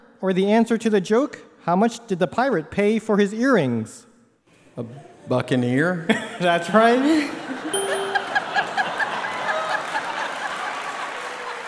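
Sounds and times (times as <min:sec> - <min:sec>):
speech: 0:00.2 - 0:04.1, 0:04.8 - 0:07.3
laughter: 0:06.1 - 0:11.6
faint tonal notes: 0:07.8 - 0:08.8
audience applause: 0:08.0 - 0:11.6.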